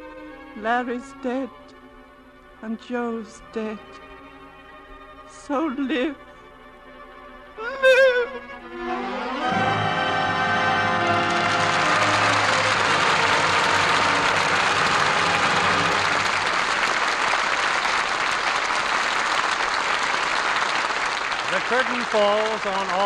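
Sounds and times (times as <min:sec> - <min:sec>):
lingering musical tones: 0:00.0 - 0:17.8
speech: 0:00.6 - 0:01.8, 0:02.6 - 0:04.1, 0:05.3 - 0:06.3, 0:07.6 - 0:09.1, 0:21.8 - 0:23.0
studio audience applause after a radio play: 0:09.2 - 0:23.0.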